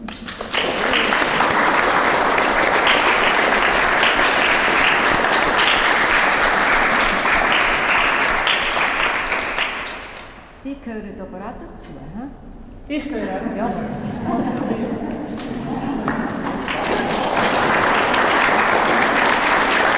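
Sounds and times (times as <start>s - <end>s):
audience applause: 0.0s - 10.3s, 14.4s - 19.9s
speech: 11.9s - 16.0s.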